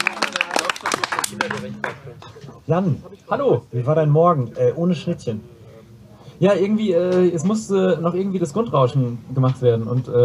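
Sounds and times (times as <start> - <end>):
audience clapping: 0.0 - 2.3
speech: 1.4 - 5.5, 6.4 - 10.2.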